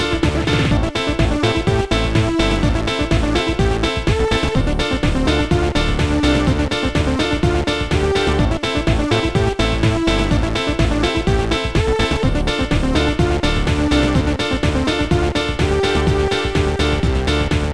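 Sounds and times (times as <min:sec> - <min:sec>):
octave tracker music on a sound card: 0:00.0 - 0:17.7.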